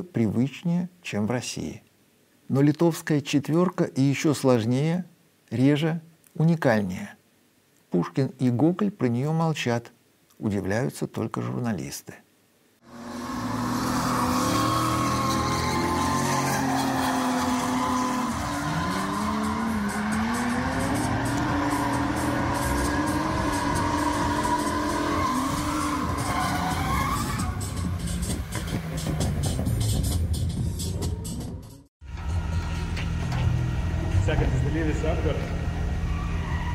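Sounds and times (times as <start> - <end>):
speech: 0.0 - 1.9, 2.5 - 7.2, 7.9 - 12.2
drifting car tires squealing and skidding: 12.9 - 30.3, 32.1 - 36.7
drifting car engine roaring: 12.9 - 31.1, 32.0 - 36.7.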